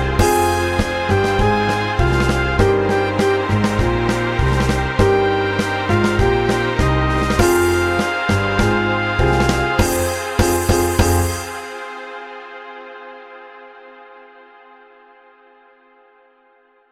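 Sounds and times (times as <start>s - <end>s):
tango music in E flat: 0.0s - 12.2s.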